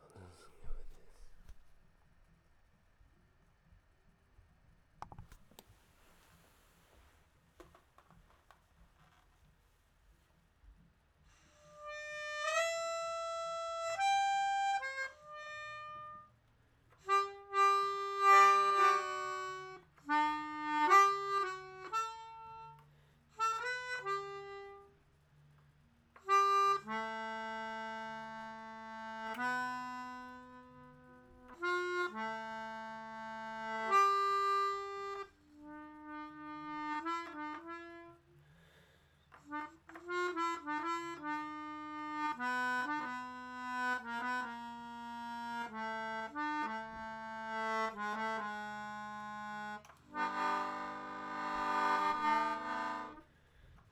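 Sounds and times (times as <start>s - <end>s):
instrumental melodica: 11.3s - 16.4s, 17.0s - 25.1s, 26.2s - 38.8s, 39.4s - 53.9s.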